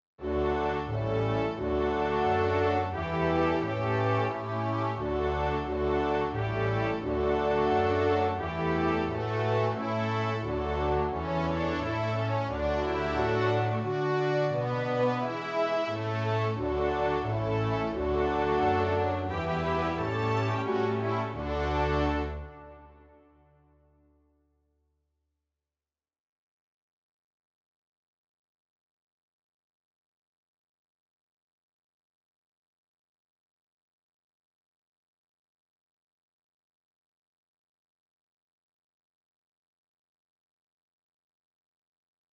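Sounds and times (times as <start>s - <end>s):
cello karaoke track: 0.2s - 22.8s.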